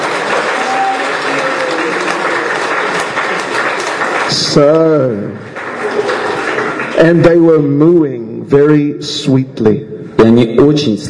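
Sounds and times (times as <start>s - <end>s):
audience applause: 0.0s - 7.6s
speech: 4.3s - 5.6s, 7.0s - 11.0s.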